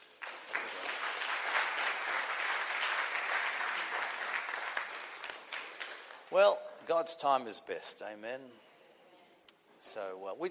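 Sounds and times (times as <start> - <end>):
audience clapping: 0.0 - 6.4
speech: 6.3 - 8.7, 9.8 - 10.4.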